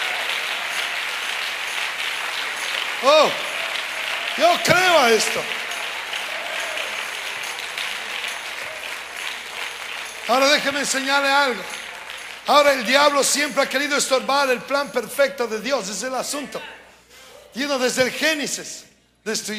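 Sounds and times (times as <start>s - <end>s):
audience applause: 0.0s - 13.9s
speech: 3.0s - 3.5s, 4.4s - 5.6s, 10.3s - 11.8s, 12.5s - 16.8s, 17.5s - 19.5s.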